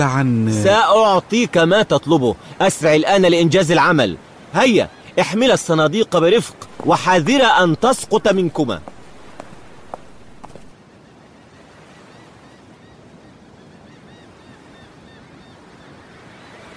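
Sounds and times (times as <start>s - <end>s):
speech: 0.0s - 8.9s
waves at a port harbour: 0.0s - 12.6s
wind at a port harbour: 0.0s - 16.7s.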